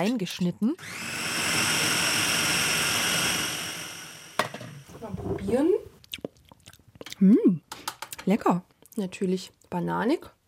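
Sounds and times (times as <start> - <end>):
speech: 0.0 - 1.2, 5.3 - 5.8, 7.2 - 7.6, 8.3 - 10.4
blender mixing a smoothie: 0.8 - 5.5.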